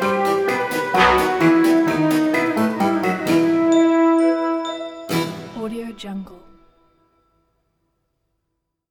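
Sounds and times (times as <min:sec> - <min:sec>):
spooky fun music: 0:00.0 - 0:06.6.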